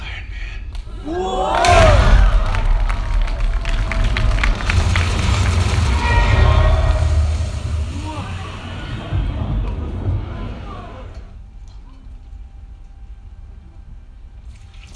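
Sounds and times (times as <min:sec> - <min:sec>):
clapping: 0:00.7 - 0:07.0
film premiere audience roaring and cheering: 0:00.8 - 0:11.4
people shouting: 0:00.9 - 0:11.2
speech: 0:01.0 - 0:01.3.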